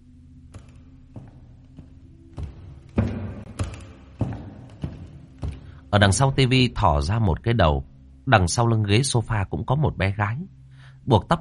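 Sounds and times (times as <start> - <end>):
footsteps in an empty living room: 0.5 - 6.2
speech: 5.9 - 11.3.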